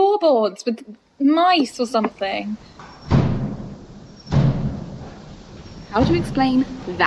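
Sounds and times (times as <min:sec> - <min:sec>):
speech: 0:00.2 - 0:02.9, 0:05.9 - 0:07.0
shutters banging in the wind on an old house: 0:02.0 - 0:07.0.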